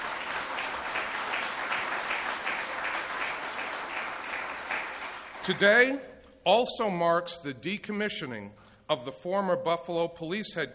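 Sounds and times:
crowd applauding: 0:00.0 - 0:05.6
speech: 0:05.5 - 0:10.7.

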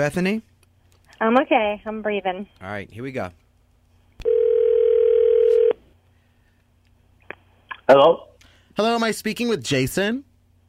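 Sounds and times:
speech: 0:00.0 - 0:00.5, 0:01.2 - 0:03.4, 0:07.9 - 0:10.3
telephone tone: 0:04.2 - 0:05.8.

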